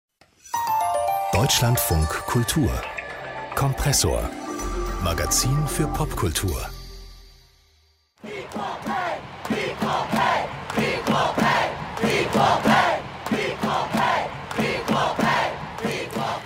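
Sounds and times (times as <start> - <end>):
speech: 1.4 - 2.9, 3.6 - 4.4, 5.0 - 6.7
stadium crowd chanting a slogan: 8.2 - 16.4.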